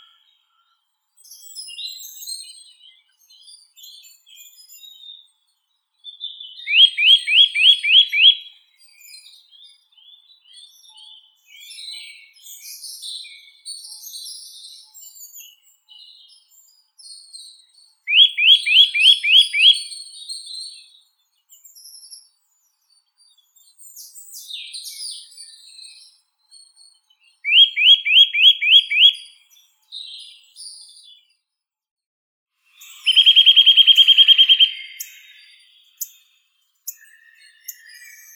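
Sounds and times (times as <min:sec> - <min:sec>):
Eurasian nuthatch Sitta europaea calling: 0:06.7 - 0:08.4, 0:18.1 - 0:19.9, 0:27.5 - 0:29.2, 0:32.8 - 0:36.3, 0:36.9 - 0:38.3.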